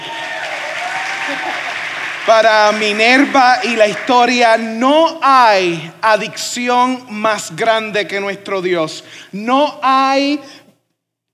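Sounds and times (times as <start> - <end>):
loud audience applause: 0.0 - 6.6
speech: 2.3 - 10.6.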